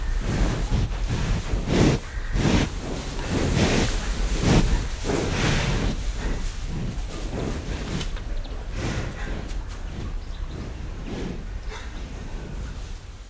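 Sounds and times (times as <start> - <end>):
cows walking on hay in farm sheds: 0.0 - 13.2
pigs in farm sheds: 0.0 - 13.2
crows in background: 1.8 - 5.0, 8.8 - 9.9.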